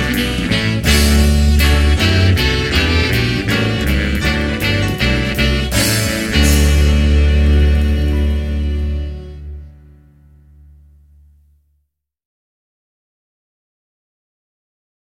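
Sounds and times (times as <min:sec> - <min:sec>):
big band playing a hymn: 0:00.0 - 0:10.0.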